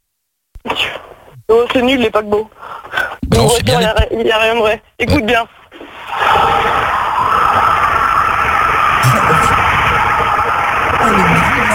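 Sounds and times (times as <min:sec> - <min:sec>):
speech: 0:01.6 - 0:05.6
Porsche car engine roaring: 0:06.1 - 0:11.7.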